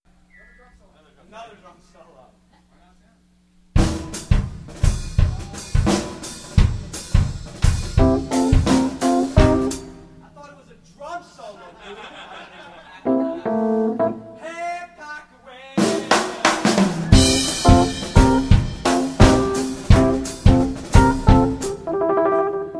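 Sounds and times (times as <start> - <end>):
drum solo: 3.8 - 10.0, 15.8 - 21.9
laughter: 11.4 - 13.9, 15.8 - 17.1.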